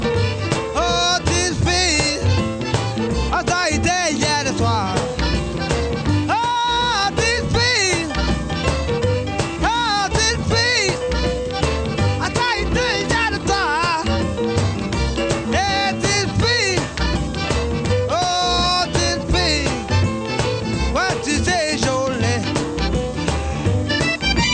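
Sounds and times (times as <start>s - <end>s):
blues music: 0.0s - 24.5s.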